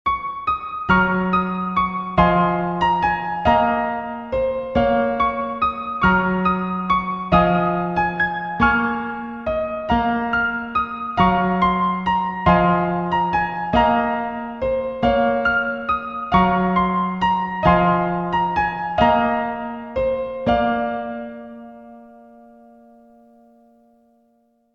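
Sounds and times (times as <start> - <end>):
piano: 0.1 - 24.7.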